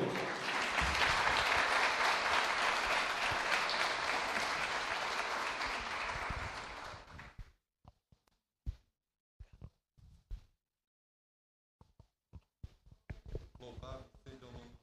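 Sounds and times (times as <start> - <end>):
audience applause: 0.0 - 7.3.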